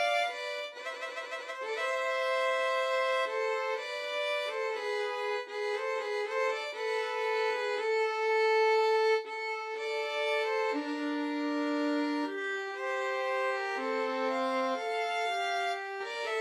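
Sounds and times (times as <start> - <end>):
pastorale on two violins and cello: 0.0 - 16.4.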